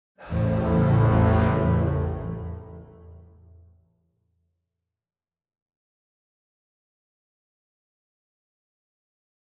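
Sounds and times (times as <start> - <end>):
demon theme music: 0.2 - 3.5.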